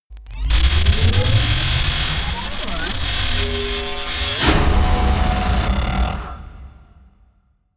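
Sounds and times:
electricity buzzing: 0.4 - 6.3.

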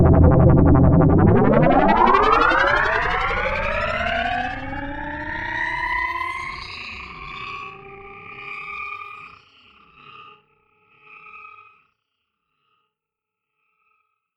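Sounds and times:
UFO atmosphere: 0.0 - 5.7.

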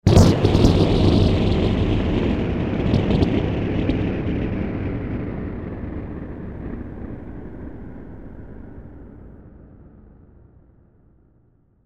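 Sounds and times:
thunder: 0.0 - 9.5.

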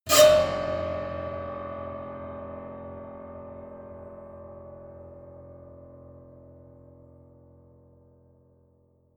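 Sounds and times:
piano squeal: 0.1 - 2.7.

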